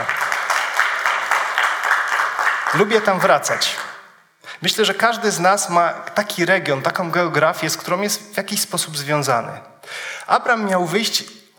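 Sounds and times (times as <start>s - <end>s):
applause: 0.0s - 4.1s
speech: 2.7s - 3.8s, 4.6s - 11.4s.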